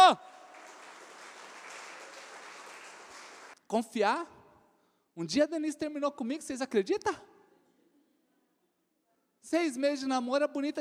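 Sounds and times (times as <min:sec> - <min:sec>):
audience applauding loudly: 0:00.0 - 0:03.6
speech: 0:03.7 - 0:04.4, 0:05.2 - 0:07.3, 0:09.4 - 0:10.7.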